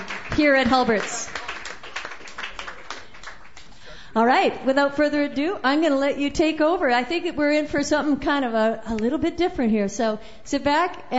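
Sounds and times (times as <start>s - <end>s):
audience applause at a Sunday night open mic: 0.0s - 3.9s
speech: 0.4s - 1.4s, 4.2s - 11.1s.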